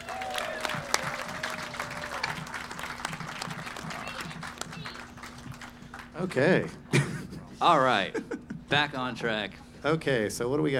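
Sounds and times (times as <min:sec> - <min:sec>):
round of applause: 0:00.0 - 0:06.3
speech: 0:06.2 - 0:06.9, 0:07.6 - 0:10.7.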